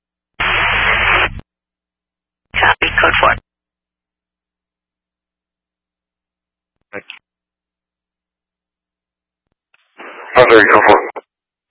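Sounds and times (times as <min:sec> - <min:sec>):
harsh radio static: 0:00.4 - 0:01.4, 0:02.6 - 0:03.4, 0:09.9 - 0:11.3.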